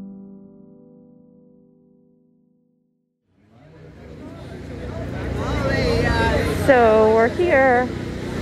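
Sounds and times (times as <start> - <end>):
generator running: 3.4 - 8.4
noisy crowd of voices: 3.4 - 8.4.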